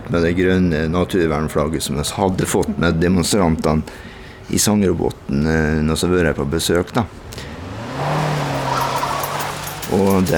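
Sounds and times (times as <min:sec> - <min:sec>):
speech: 0:00.1 - 0:08.1, 0:09.9 - 0:10.3
small Fiat car speeding up an old dirt cart road: 0:07.4 - 0:10.3.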